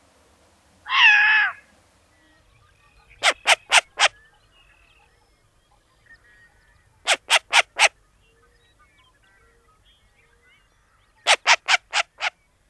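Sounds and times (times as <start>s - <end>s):
short-eared owl giving harsh barking calls: 0.9s - 1.7s, 3.0s - 4.3s, 6.4s - 8.0s, 11.2s - 12.4s.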